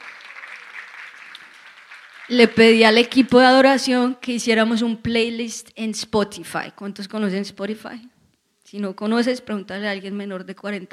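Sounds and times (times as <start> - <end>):
audience applauding: 0.0 - 2.6
speech: 2.3 - 8.1, 8.7 - 10.9.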